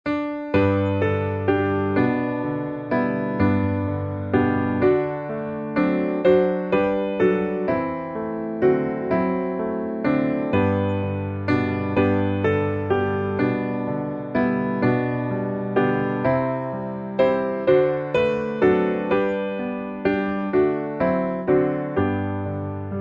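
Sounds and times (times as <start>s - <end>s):
piano: 0.0s - 22.9s.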